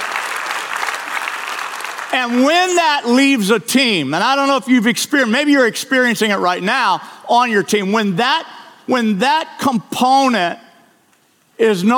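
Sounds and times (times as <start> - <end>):
audience clapping hands: 0.0 - 2.7
speech: 2.1 - 10.6, 11.6 - 11.9.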